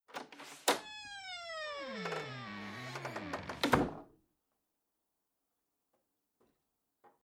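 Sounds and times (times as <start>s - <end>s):
door creaking: 0.2s - 4.0s.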